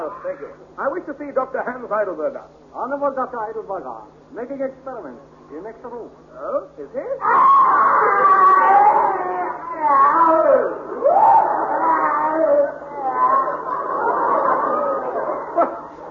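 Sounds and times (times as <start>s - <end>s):
speech: 0.1s - 12.8s
person screaming in pain: 7.2s - 13.6s
laughter: 10.8s - 16.0s.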